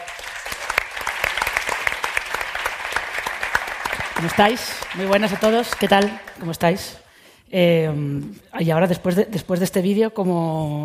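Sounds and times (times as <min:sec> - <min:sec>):
audience applause: 0:00.0 - 0:06.5
speech: 0:04.2 - 0:10.8.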